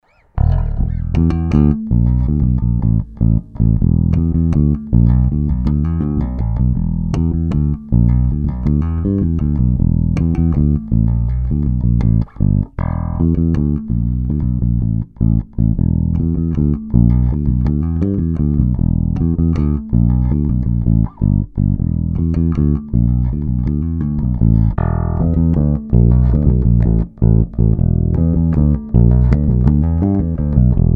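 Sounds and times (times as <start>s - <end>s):
Yamaha TBRX bass with active passive mid neck bridge pickups: 0.0s - 30.9s.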